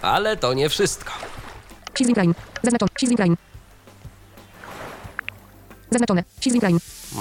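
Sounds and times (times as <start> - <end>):
speech: 0.0 - 1.4, 2.0 - 3.6, 5.9 - 7.1
ocean waves: 0.0 - 7.1.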